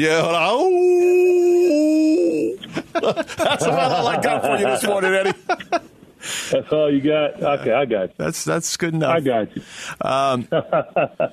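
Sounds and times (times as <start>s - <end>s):
speech: 0.0s - 1.1s, 3.0s - 11.3s
person imitating a wolf howl: 0.5s - 2.6s
laughter: 2.6s - 5.9s, 10.5s - 11.3s.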